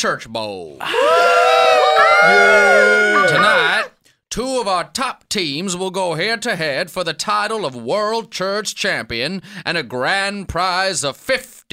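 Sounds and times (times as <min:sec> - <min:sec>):
speech: 0:00.0 - 0:11.7
large crowd cheering wildly in arena: 0:00.8 - 0:03.9.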